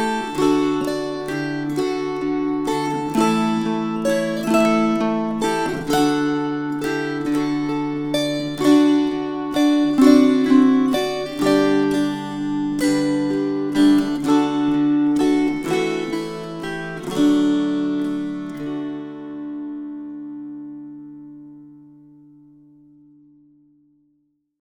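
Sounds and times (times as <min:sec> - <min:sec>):
string choir: 0:00.0 - 0:19.2.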